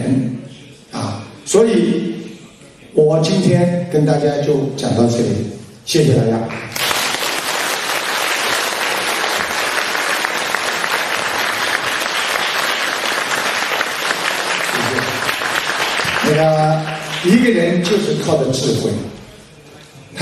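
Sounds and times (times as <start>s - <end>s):
speech: 1.5s - 2.1s, 3.0s - 6.8s, 16.3s - 19.2s
dense applause from a small audience after a talk: 6.7s - 17.6s.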